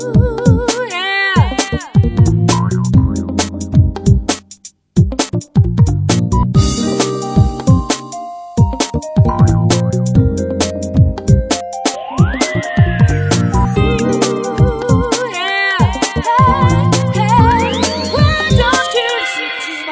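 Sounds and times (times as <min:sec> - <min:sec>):
beats: 0:00.2 - 0:19.3.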